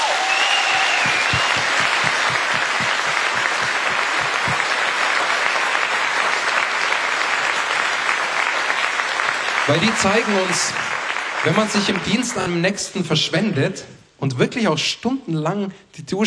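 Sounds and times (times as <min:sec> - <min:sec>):
large crowd applauding: 0:00.0 - 0:12.5
speech: 0:09.7 - 0:16.2.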